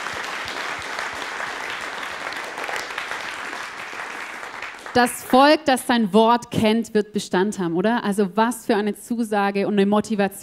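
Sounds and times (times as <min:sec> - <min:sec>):
audience applause: 0:00.0 - 0:05.3
speech: 0:05.0 - 0:10.4.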